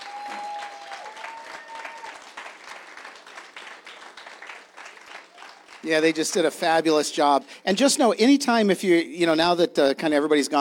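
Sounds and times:
audience round of applause: 0.0s - 6.6s
speech: 5.8s - 10.5s.

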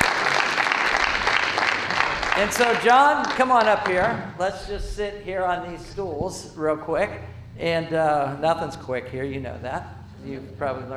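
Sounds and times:
audience clapping: 0.0s - 4.4s
speech: 2.4s - 10.9s.

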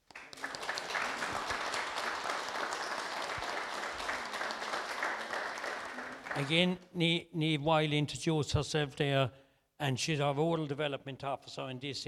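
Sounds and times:
audience round of applause: 0.0s - 6.6s
speech: 6.4s - 12.0s.

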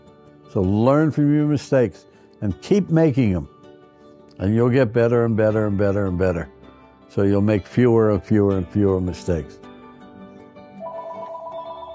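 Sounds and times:
speech: 0.5s - 3.5s, 4.4s - 9.6s
telephone ringing with a bright electronic trill: 10.8s - 11.9s.

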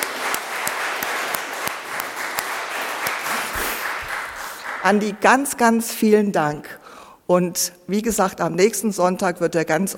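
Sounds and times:
audience applause: 0.0s - 5.2s
speech: 4.8s - 9.9s.

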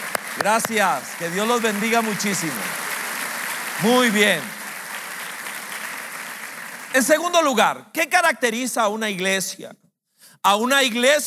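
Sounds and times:
audience applause: 0.0s - 7.2s
speech: 0.4s - 2.8s, 3.8s - 4.6s, 6.9s - 9.8s, 10.4s - 11.2s.

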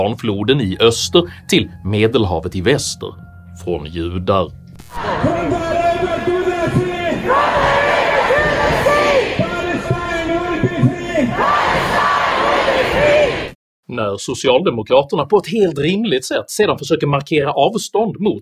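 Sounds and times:
speech: 0.0s - 5.6s, 13.9s - 18.4s
large crowd chanting in unison: 4.9s - 13.6s.

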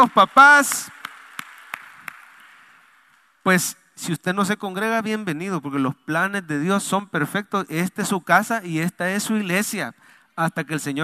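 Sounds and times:
speech: 0.0s - 1.0s, 3.4s - 11.0s
applause: 0.0s - 3.5s
noise: 0.0s - 11.0s.

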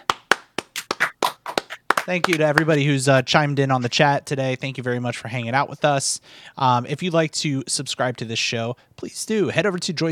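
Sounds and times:
hosts clapping: 0.0s - 2.8s
speech: 2.1s - 10.1s.

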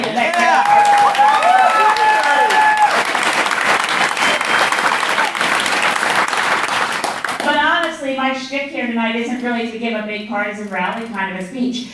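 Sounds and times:
audience applause: 0.0s - 7.6s
whistles and cheers: 0.3s - 6.3s
speech: 9.1s - 11.9s.

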